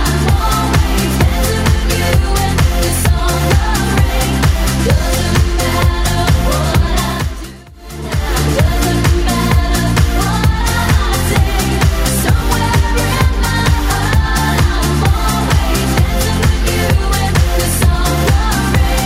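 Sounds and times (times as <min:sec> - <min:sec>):
drum beat: 0:00.0 - 0:19.0.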